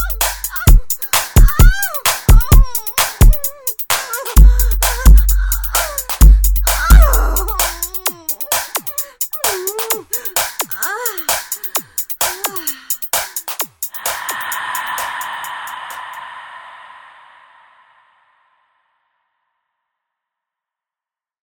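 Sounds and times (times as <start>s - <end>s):
beat: 0.0s - 16.2s.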